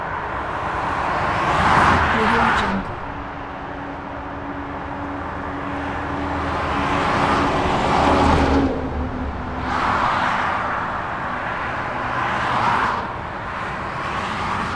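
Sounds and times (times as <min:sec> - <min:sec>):
highway ambience over a bridge: 0:00.0 - 0:14.7.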